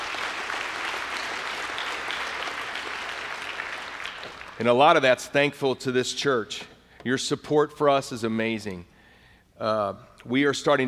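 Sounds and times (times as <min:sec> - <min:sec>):
audience applause: 0:00.0 - 0:04.6
speech: 0:04.6 - 0:08.9, 0:09.6 - 0:10.8.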